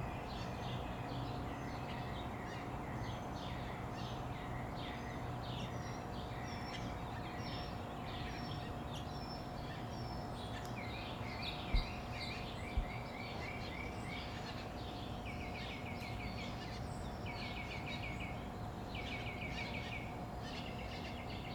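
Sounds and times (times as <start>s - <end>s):
dawn bird chorus in summer in Phoenix, Arizona: 0.0s - 21.5s.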